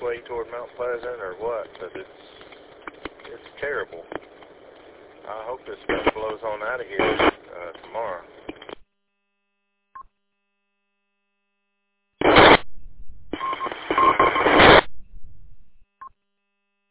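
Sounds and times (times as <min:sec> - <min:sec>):
harsh static bursts with warbling tones: 0:00.0 - 0:08.8, 0:12.2 - 0:15.8
speech: 0:00.2 - 0:02.3, 0:03.3 - 0:04.2, 0:05.3 - 0:08.3
electronic beeps over a radio channel: 0:13.4 - 0:16.1.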